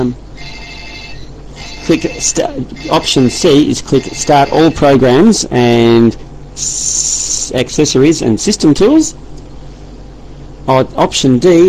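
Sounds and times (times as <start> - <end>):
speech: 0.0 - 0.2, 1.9 - 9.2, 10.7 - 11.6
telephone ringing with a high electronic warbling tone: 0.4 - 5.2
voice burst: 1.6 - 5.0.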